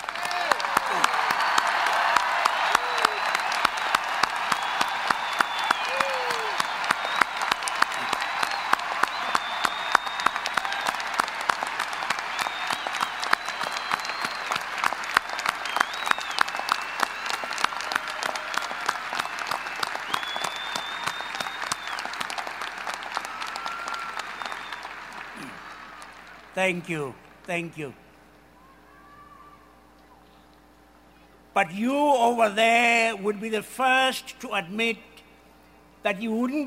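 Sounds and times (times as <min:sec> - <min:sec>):
rousing audience applause: 0:00.0 - 0:27.1
speech: 0:26.6 - 0:28.0, 0:31.6 - 0:35.1, 0:36.0 - 0:36.6.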